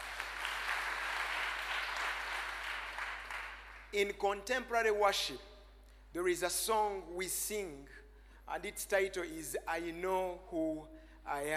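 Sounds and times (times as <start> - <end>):
audience hand clapping: 0.0 - 4.0
speech: 3.9 - 5.5, 6.1 - 11.5.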